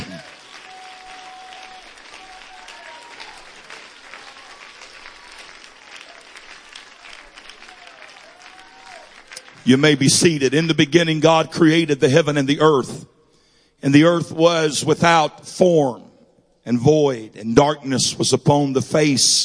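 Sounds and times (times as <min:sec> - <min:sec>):
audience clapping hands: 0:00.0 - 0:11.0
speech: 0:09.6 - 0:13.1, 0:13.8 - 0:19.4.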